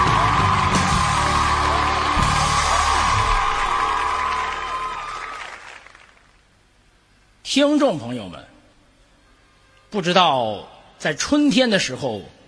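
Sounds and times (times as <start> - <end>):
live-show audience applause and cheering: 0.0 - 6.6
speech: 7.6 - 8.5, 9.9 - 12.4.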